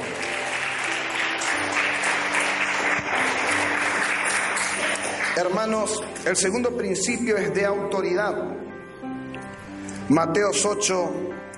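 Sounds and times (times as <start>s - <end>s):
audience applause: 0.0s - 6.1s
speech: 5.4s - 8.7s, 10.1s - 11.3s.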